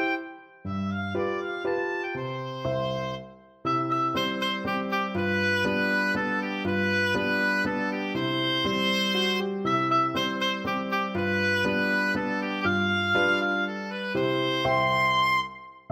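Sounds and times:
oboe playing: 0:00.0 - 0:15.8.

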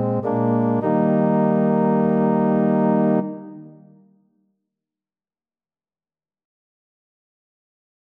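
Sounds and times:
organ piece: 0:00.0 - 0:03.9.

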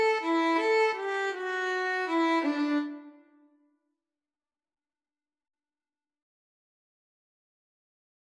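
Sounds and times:
violin duet: 0:00.0 - 0:03.2.

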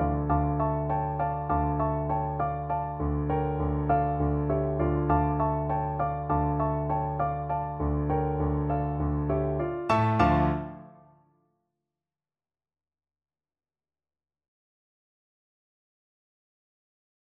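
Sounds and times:
ballet piece as piano duet: 0:00.0 - 0:11.1.

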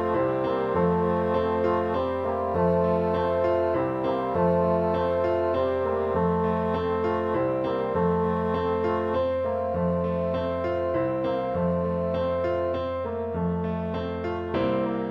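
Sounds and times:
four bassoons playing a round: 0:00.0 - 0:14.9.

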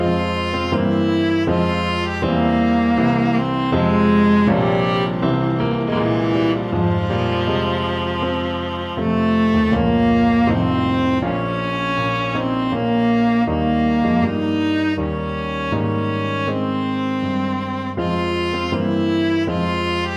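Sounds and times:
viola playing a galliard sonata: 0:00.0 - 0:20.1.

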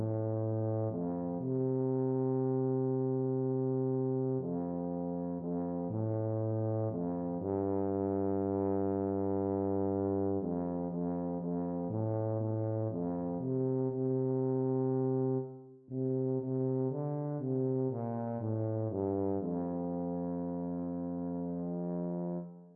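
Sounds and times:
tuba playing a children's song: 0:00.0 - 0:22.7.

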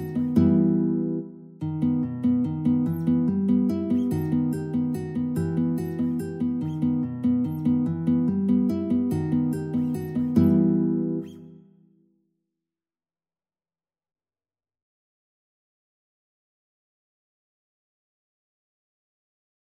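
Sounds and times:
guitar playing a waltz in E minor: 0:00.0 - 0:11.8.

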